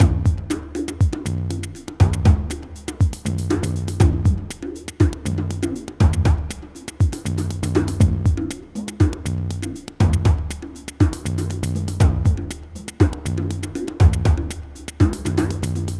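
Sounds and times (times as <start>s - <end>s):
processed percussion: 0.0s - 15.9s.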